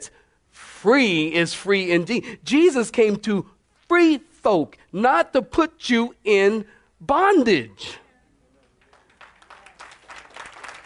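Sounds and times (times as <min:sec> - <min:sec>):
speech: 0:00.8 - 0:08.0
audience clapping hands: 0:08.6 - 0:10.8.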